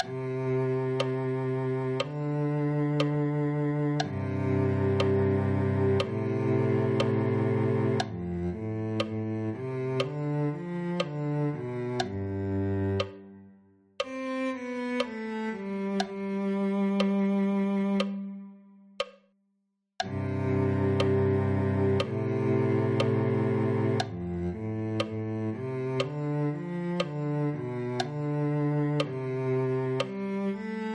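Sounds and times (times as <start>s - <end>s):
cello: 0.0s - 19.1s, 20.0s - 30.9s.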